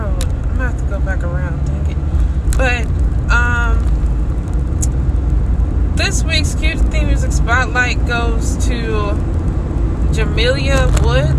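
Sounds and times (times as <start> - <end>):
car driving on a road: 0.0 - 11.3
steady humming tone: 0.0 - 11.3
speech: 6.1 - 9.4, 10.1 - 11.3.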